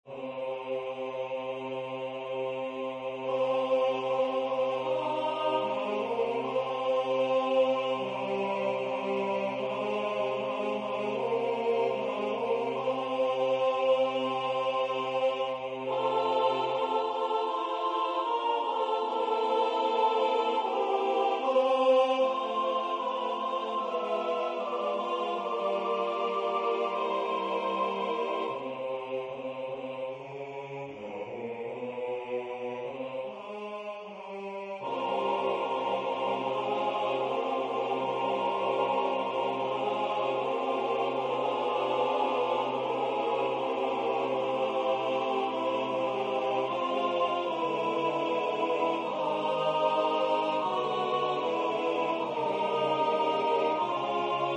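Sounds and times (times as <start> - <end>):
five-part choir singing: 0.0 - 54.5.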